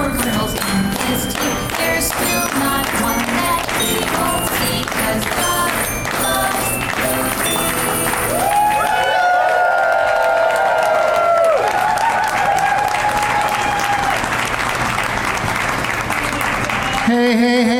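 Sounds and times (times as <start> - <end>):
audience clapping after a Christmas song: 0.2 - 17.7
whoops and shouted cheers: 8.3 - 14.4, 16.4 - 17.2.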